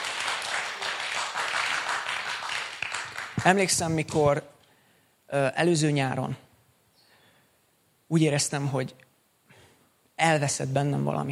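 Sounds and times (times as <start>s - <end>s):
audience applause: 0.0s - 3.6s
speech: 3.4s - 4.6s, 5.3s - 6.4s, 8.1s - 9.1s, 10.2s - 11.3s.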